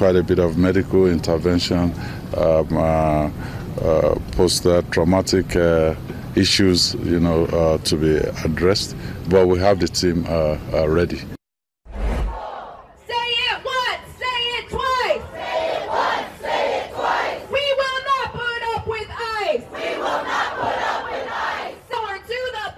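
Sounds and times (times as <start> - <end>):
speech: 0.0 - 11.4
protest crowd shouting in Houston, Texas: 12.3 - 18.2, 19.3 - 22.3.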